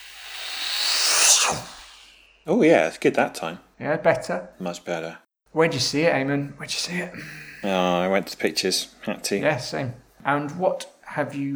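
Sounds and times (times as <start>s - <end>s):
voice imitating a jet airplane whoosh: 0.0s - 2.4s
speech: 1.5s - 1.8s, 2.4s - 11.5s.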